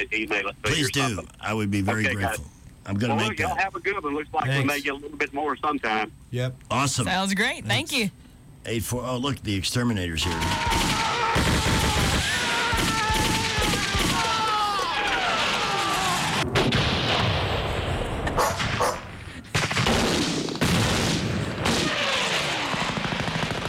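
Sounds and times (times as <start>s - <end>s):
speech: 0.0s - 11.5s
gunfire sound effect of shots at a mouse: 10.3s - 14.4s, 15.2s - 23.6s.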